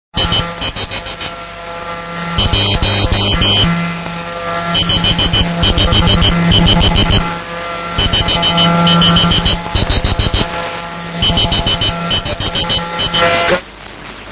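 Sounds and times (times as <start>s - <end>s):
morse code beeps: 0.2s - 1.2s, 2.4s - 3.7s, 4.7s - 7.3s, 8.0s - 10.6s, 11.2s - 13.6s.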